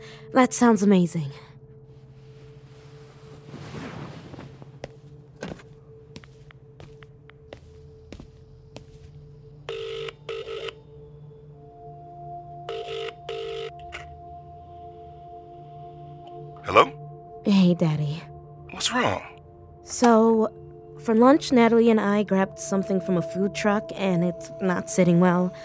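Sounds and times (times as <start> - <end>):
speech: 0.3 - 1.5, 17.8 - 18.1, 18.9 - 19.3, 19.9 - 25.6
buzzing telephone rings: 9.7 - 10.9, 12.7 - 14.1.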